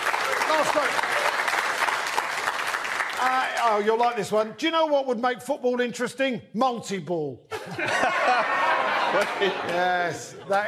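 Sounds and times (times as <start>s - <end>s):
audience clapping: 0.0s - 4.4s, 8.7s - 10.6s
speech: 0.5s - 1.1s, 3.2s - 10.6s
laughter: 7.5s - 10.6s.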